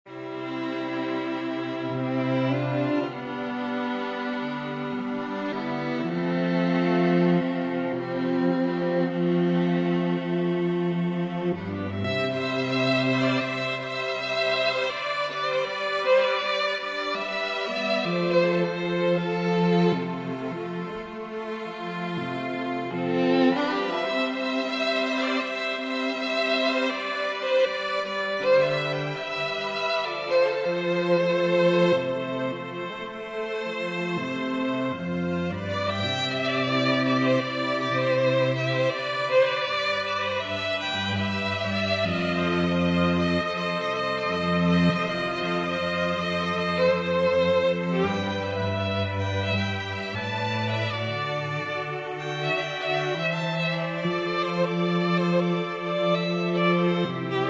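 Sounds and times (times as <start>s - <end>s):
string quartet: 0.0s - 57.4s.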